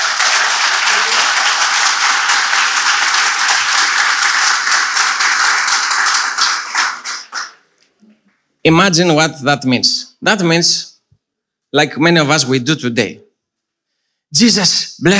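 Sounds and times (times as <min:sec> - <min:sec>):
audience clapping: 0:00.0 - 0:08.0
speech: 0:08.6 - 0:10.9, 0:11.7 - 0:13.2, 0:14.3 - 0:15.1.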